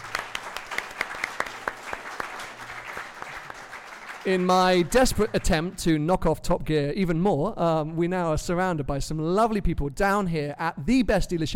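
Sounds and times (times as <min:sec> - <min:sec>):
live audience applause: 0:00.0 - 0:05.9
speech: 0:04.2 - 0:11.5.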